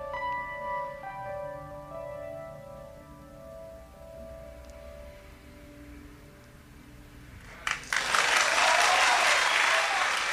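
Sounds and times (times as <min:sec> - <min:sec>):
group of people clapping together: 0:07.4 - 0:10.3.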